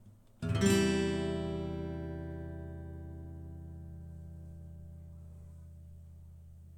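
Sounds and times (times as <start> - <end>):
guitar: 0.0 - 6.7.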